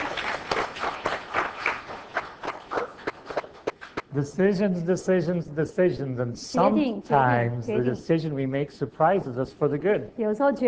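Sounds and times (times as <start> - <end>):
crowd clapping: 0.0 - 4.1
speech: 4.2 - 10.6.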